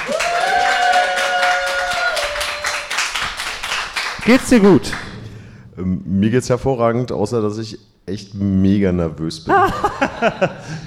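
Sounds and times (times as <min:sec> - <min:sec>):
applause: 0:00.0 - 0:05.1
speech: 0:04.2 - 0:05.1, 0:05.8 - 0:10.8
laughter: 0:09.5 - 0:10.8.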